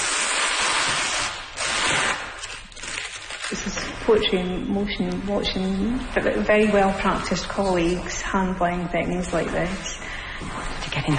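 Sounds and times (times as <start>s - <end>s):
paper tape peeled while unwrapping a painting: 0.0s - 4.2s
speech: 4.1s - 10.5s.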